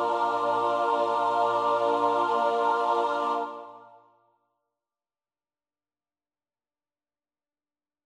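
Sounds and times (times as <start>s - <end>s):
soprano alto tenor bass voices: 0.0s - 3.8s.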